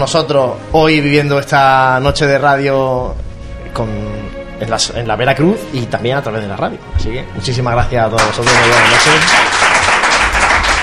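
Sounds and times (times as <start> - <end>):
speech: 0.0 - 9.7
warm applause from the brotherhood members of la Veracruz: 8.2 - 10.8.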